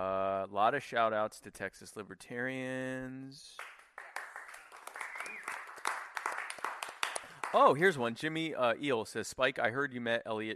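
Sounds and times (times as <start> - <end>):
speech: 0.6 - 3.7, 7.5 - 10.5
applause sound effect: 3.6 - 8.1.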